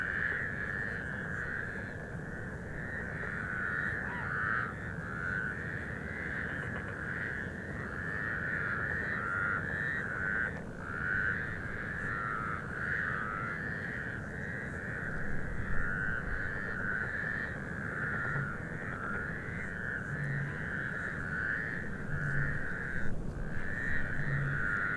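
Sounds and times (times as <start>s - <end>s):
Mongolian toad chorus trilling: 0.0s - 24.9s.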